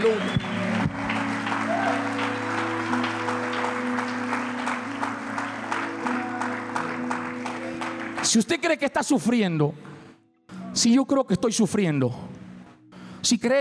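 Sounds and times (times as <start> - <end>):
crowd clapping: 0.0 - 8.7
speech: 8.3 - 9.9, 10.8 - 12.4, 13.2 - 13.6.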